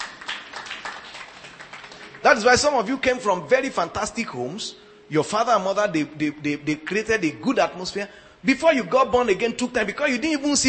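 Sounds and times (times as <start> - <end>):
audience clapping: 0.0 - 3.2
speech: 2.2 - 10.6.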